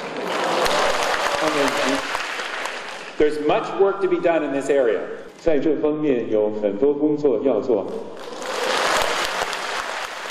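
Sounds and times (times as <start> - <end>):
audience cheering and applause: 0.0 - 3.4, 8.2 - 10.2
speech: 3.2 - 8.2.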